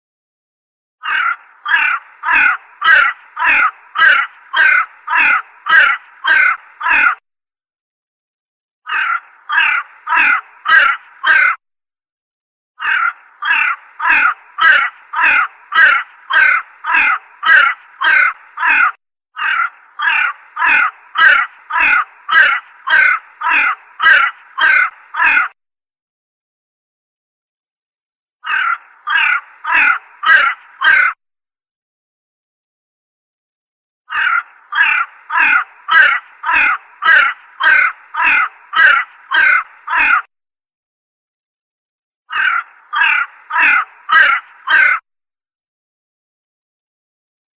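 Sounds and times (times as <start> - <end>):
crow calling: 1.0 - 7.2, 8.9 - 11.6, 12.8 - 25.6, 28.4 - 31.2, 34.1 - 40.3, 42.3 - 45.0.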